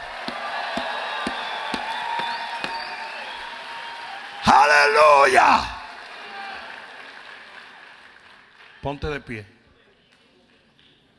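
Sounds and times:
sharp rhythmic clapping: 0:00.0 - 0:03.0
audience shouting and cheering in praise: 0:00.0 - 0:06.7
speech: 0:04.7 - 0:05.7, 0:08.8 - 0:09.6.

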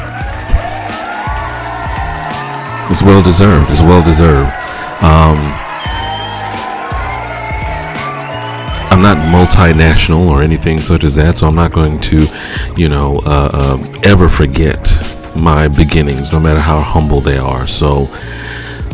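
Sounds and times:
round of applause: 0:00.0 - 0:09.0
speech: 0:02.9 - 0:05.6, 0:09.0 - 0:18.5.

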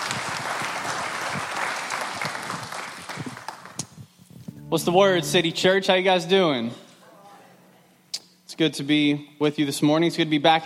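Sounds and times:
audience round of applause: 0:00.0 - 0:03.8
speech: 0:04.7 - 0:06.8, 0:08.6 - 0:10.6.

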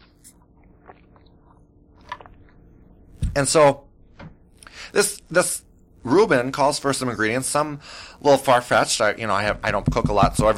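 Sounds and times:
person sipping water and swallowing: 0:00.0 - 0:03.0
speech: 0:03.4 - 0:03.8, 0:04.9 - 0:10.5.

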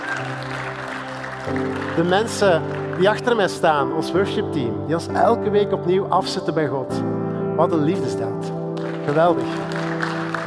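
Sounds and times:
crowd applauding: 0:00.0 - 0:04.0, 0:08.8 - 0:10.4
speech: 0:01.5 - 0:09.8.

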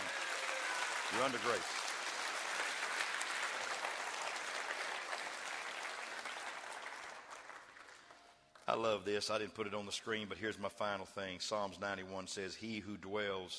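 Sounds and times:
audience clapping hands: 0:00.0 - 0:08.9
speech: 0:01.1 - 0:01.8, 0:08.8 - 0:13.5.

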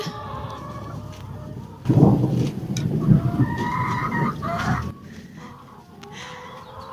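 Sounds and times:
thunder: 0:01.8 - 0:05.1.

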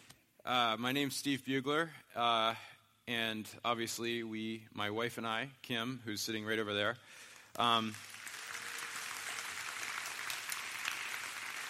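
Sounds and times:
speech: 0:00.4 - 0:08.1
audience clapping: 0:07.5 - 0:11.6.

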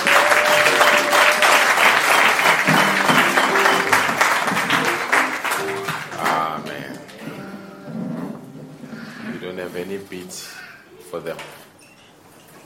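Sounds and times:
audience clapping hands: 0:00.0 - 0:07.4.

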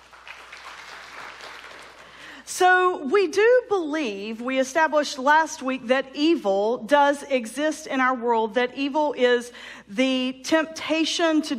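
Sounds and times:
audience clapping: 0:00.0 - 0:02.4
speech: 0:02.5 - 0:11.5.

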